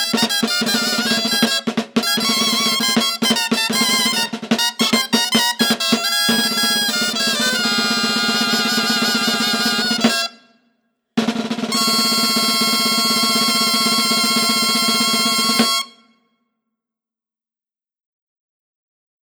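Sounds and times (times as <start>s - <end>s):
atabal drum: 0.0s - 10.4s, 11.2s - 16.0s
gaita bagpipe: 0.0s - 10.5s, 11.7s - 16.1s.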